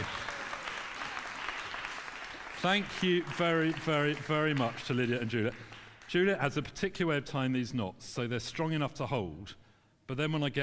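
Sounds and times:
audience applause: 0.0s - 6.1s
speech: 2.6s - 10.6s.

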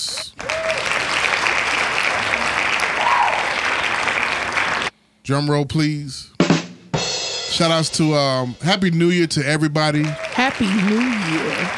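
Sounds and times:
crowd applause: 0.0s - 4.9s, 9.4s - 11.7s
speech: 5.3s - 6.4s, 7.5s - 11.7s.

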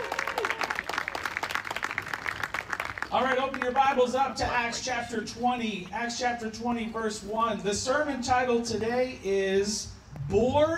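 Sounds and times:
audience round of applause: 0.0s - 3.9s
speech: 3.1s - 10.7s.

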